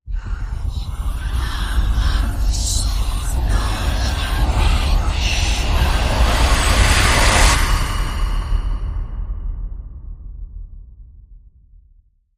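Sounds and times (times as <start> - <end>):
vengeful demonic whispers: 0.0 - 9.7.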